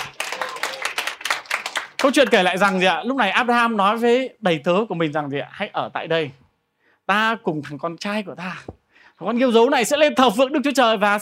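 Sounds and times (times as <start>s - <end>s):
audience clapping: 0.0s - 3.0s
speech: 2.0s - 6.4s, 7.1s - 11.2s.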